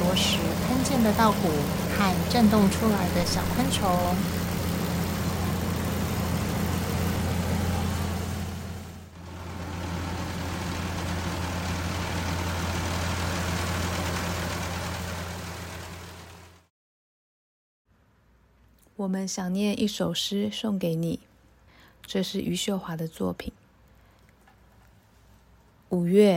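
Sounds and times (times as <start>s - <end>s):
combine harvester engine droning in rice field: 0.0s - 16.7s
speech: 1.0s - 4.4s, 19.0s - 21.3s, 22.1s - 23.6s, 25.9s - 26.3s.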